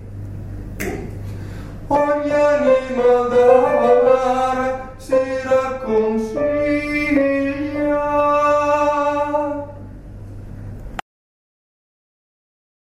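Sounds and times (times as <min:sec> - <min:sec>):
sopranos singing: 0:01.9 - 0:09.8.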